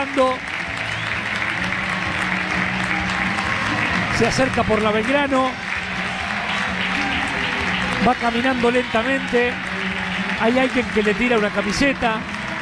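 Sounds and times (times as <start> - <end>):
speech: 0.0 - 0.5, 4.2 - 5.7, 8.0 - 12.3
crowd applauding: 0.0 - 12.6.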